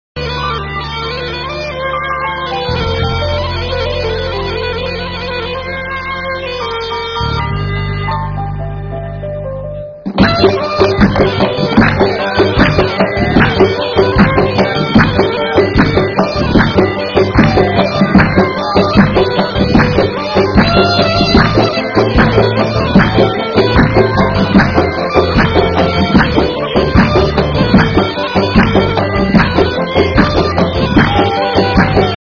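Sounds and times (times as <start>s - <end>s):
music: 0.2s - 32.2s.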